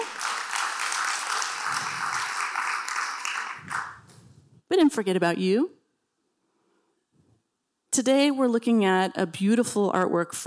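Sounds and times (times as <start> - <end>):
audience round of applause: 0.0 - 4.0
speech: 4.7 - 5.8, 8.0 - 10.4.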